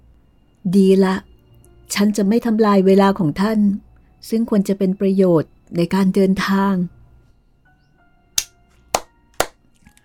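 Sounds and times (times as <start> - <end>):
speech: 0.6 - 1.3, 1.9 - 7.0
hands clapping: 8.4 - 9.6.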